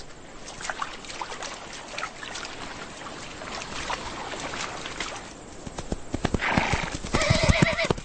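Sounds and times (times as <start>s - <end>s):
feral mustangs galloping with thudding hoofbeats: 2.4s - 8.0s
feral mustang whinnying: 6.4s - 8.0s.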